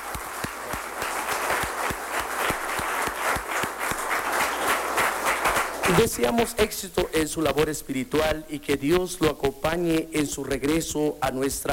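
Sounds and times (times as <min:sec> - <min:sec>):
applause: 0:00.0 - 0:06.4
speech: 0:05.9 - 0:11.7.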